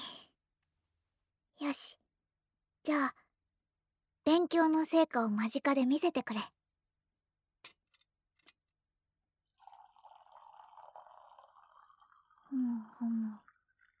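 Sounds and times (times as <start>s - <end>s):
speech: 2.9s - 3.2s, 4.3s - 6.6s, 12.5s - 13.4s
boiling water poured into a teapot: 9.5s - 13.9s.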